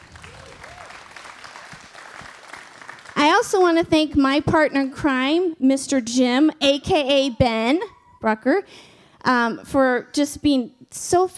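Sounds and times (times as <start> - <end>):
audience clapping: 0.0 - 3.4
speech: 3.4 - 11.3.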